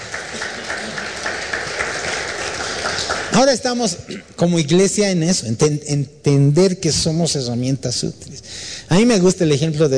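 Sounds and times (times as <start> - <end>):
audience applauding: 0.0 - 3.8
speech: 3.4 - 9.9.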